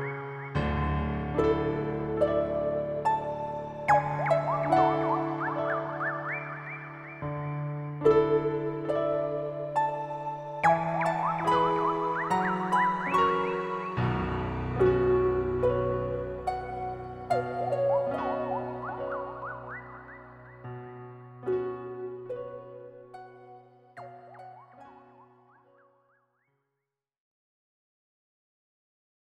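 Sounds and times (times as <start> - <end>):
overture: 0.0 - 20.8.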